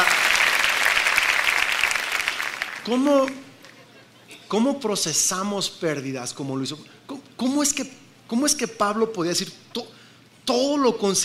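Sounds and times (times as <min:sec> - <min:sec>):
audience applause: 0:00.0 - 0:03.4
speech: 0:02.9 - 0:03.4, 0:04.5 - 0:11.2.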